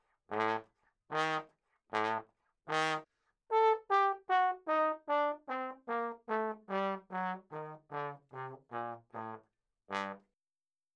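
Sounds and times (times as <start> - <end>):
ragtime trombone: 0.3 - 1.4, 2.0 - 3.0, 3.7 - 10.2.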